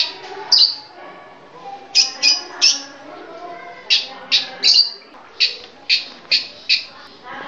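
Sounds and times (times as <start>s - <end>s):
female long-tailed shrike chattering calls: 0.0s - 1.0s, 1.9s - 7.3s.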